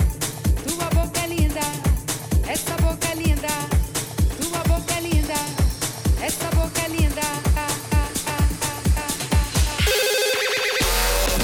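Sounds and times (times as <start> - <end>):
thumping beats: 0.0 - 11.4
telephone electronic ringtone for a prank call segment: 9.8 - 11.4.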